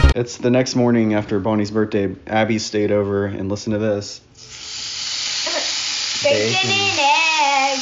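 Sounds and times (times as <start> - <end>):
speech: 0.2 - 4.3, 6.2 - 7.7
bacon and eggs sizzling in a frying pan: 4.4 - 7.7.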